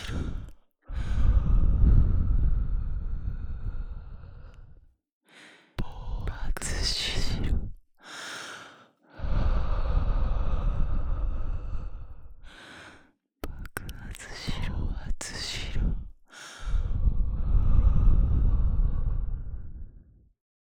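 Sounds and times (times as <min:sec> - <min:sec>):
whispering: 0:00.0 - 0:01.2, 0:05.6 - 0:07.8, 0:13.4 - 0:18.1
breathing: 0:00.0 - 0:06.3, 0:08.0 - 0:13.2, 0:16.3 - 0:20.1.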